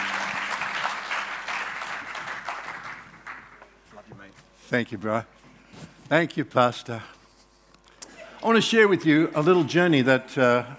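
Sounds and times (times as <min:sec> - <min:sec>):
church congregation applauding to welcome the preacher: 0:00.0 - 0:03.7
speech: 0:04.7 - 0:05.4, 0:06.1 - 0:07.2, 0:08.4 - 0:10.7.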